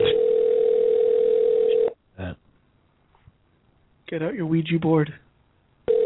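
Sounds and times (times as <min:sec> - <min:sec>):
outgoing telephone call ringing tone: 0:00.0 - 0:02.0, 0:05.9 - 0:06.0
speech: 0:04.1 - 0:05.2.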